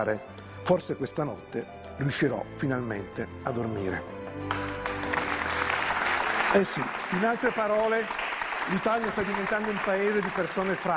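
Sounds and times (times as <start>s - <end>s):
speech: 0.0s - 4.7s, 6.5s - 10.9s
applause: 4.4s - 10.9s.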